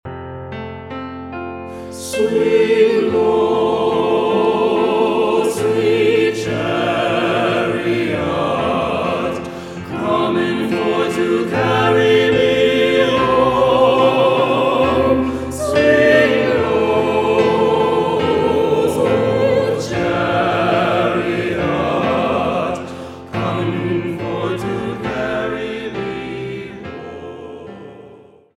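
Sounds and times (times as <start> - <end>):
spiritual song: 0.5 - 28.5.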